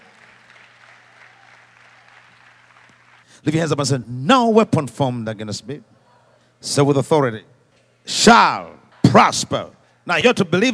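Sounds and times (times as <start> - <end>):
audience applause: 0.0 - 3.3
speech: 3.4 - 6.0, 6.6 - 10.7.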